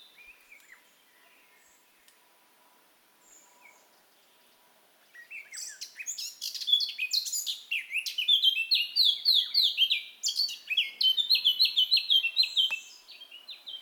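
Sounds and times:
Eurasian blackcap song: 5.2s - 13.8s.

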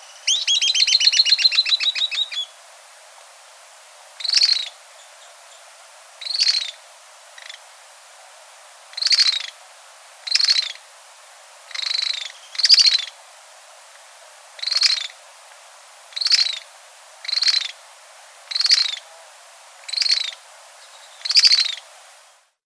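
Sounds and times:
bird harsh raspy calls: 0.0s - 2.6s, 4.2s - 5.4s, 6.2s - 7.7s, 9.0s - 9.6s, 10.2s - 10.8s, 11.7s - 13.2s, 14.6s - 15.2s, 16.1s - 17.8s, 18.5s - 21.9s
hiss: 0.0s - 22.6s.

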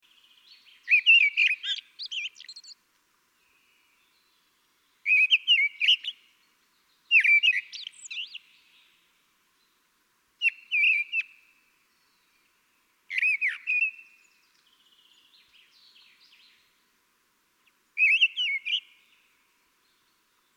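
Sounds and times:
common blackbird singing: 0.1s - 2.8s, 5.0s - 9.0s, 10.4s - 12.5s, 13.1s - 16.7s, 18.0s - 20.5s.

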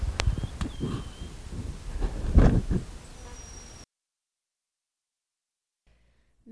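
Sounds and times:
birds calling: 0.2s - 1.5s, 2.9s - 3.9s.

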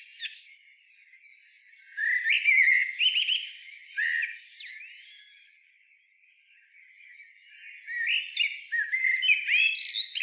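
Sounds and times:
common blackbird Turdus merula singing: 0.0s - 5.6s, 6.4s - 10.2s.

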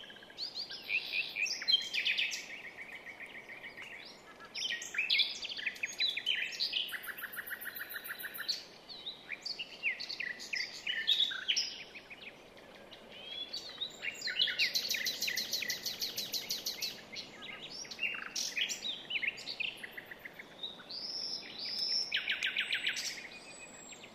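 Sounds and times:
common nightingale song: 0.0s - 24.1s
low steady hiss: 0.0s - 24.1s.

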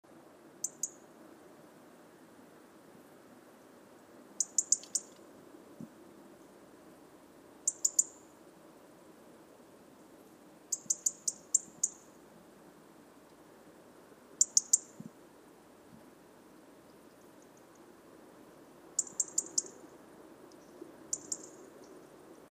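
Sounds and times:
faint low background noise: 0.0s - 22.4s
European robin ticking calls: 0.6s - 1.0s, 4.4s - 5.2s, 7.7s - 8.3s, 10.7s - 12.2s, 14.4s - 15.1s, 19.0s - 19.8s, 20.5s - 22.0s.

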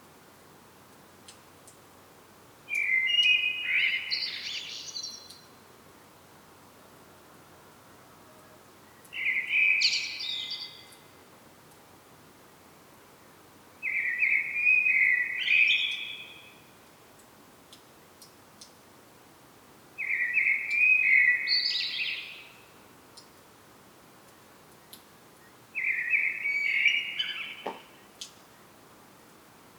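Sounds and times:
common blackbird singing: 2.7s - 5.4s, 9.0s - 11.0s, 13.8s - 16.5s, 20.0s - 22.5s, 25.8s - 28.0s.

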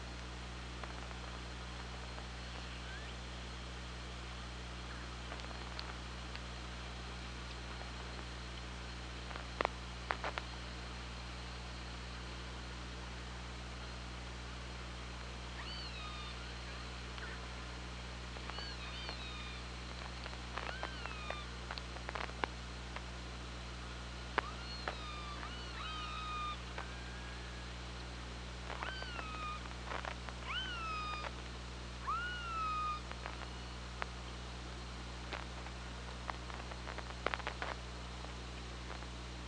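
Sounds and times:
steady hum: 0.0s - 39.4s
killer whale calls: 20.6s - 21.5s, 24.4s - 27.8s, 28.8s - 29.6s, 30.4s - 31.3s, 32.0s - 33.7s.

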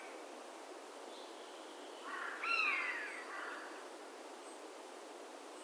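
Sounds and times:
carrion crow Corvus corone giving harsh hoarse caws: 2.1s - 3.7s.

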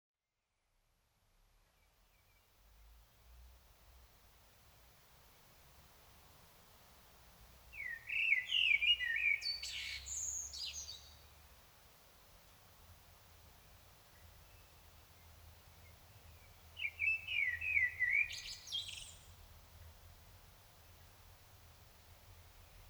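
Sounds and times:
common blackbird whistled phrase: 7.7s - 11.2s, 15.8s - 19.4s.

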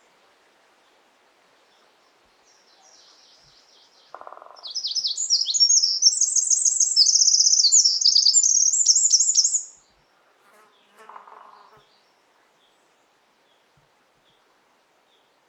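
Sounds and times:
Eurasian wren shrill trilling song: 3.8s - 9.8s.

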